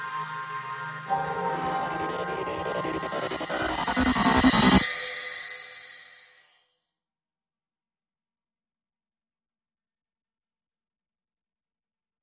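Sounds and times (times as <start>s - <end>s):
synth pads: 0.0s - 4.9s.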